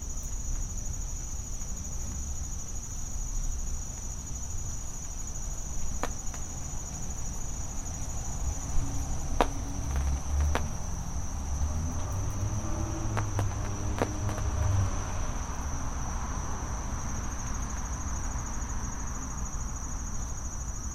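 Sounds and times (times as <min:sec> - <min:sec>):
high cricket trill in a back yard: 0:00.0 - 0:20.9.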